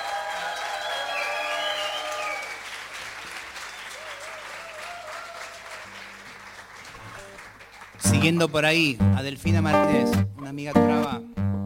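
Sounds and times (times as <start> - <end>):
faint whistles and cheers: 0.0 - 2.7, 3.6 - 6.0
audience applause: 0.0 - 8.8
speech: 8.1 - 11.3.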